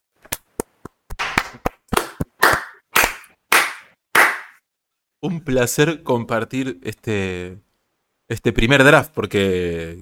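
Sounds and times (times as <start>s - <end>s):
hands clapping: 0.2s - 4.6s
speech: 5.2s - 7.6s, 8.3s - 10.0s.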